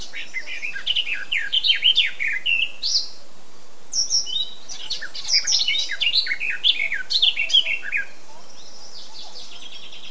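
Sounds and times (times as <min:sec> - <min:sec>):
Eurasian blackcap warbling song: 0:00.0 - 0:03.2, 0:03.9 - 0:10.0.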